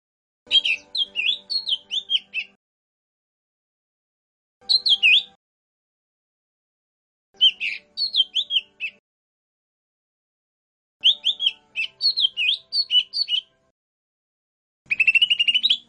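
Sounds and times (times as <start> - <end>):
lesser green leafbird whistled song: 0.5 - 2.6, 4.6 - 5.4, 7.4 - 9.0, 11.0 - 13.5, 14.9 - 15.8.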